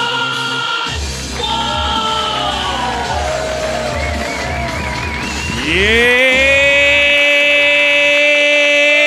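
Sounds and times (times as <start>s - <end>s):
crowd cheering: 0.9s - 9.0s
speech: 5.7s - 6.1s.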